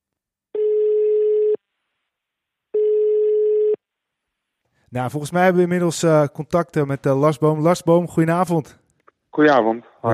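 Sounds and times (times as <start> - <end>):
telephone ringback tone while placing a call: 0.6 - 1.6, 2.8 - 3.8
speech: 4.9 - 8.8, 9.4 - 10.1.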